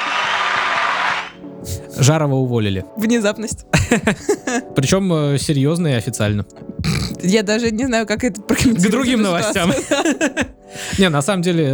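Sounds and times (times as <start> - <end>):
studio applause: 0.0 - 1.4
speech: 2.0 - 11.7
laughter: 3.7 - 4.8, 8.5 - 11.1.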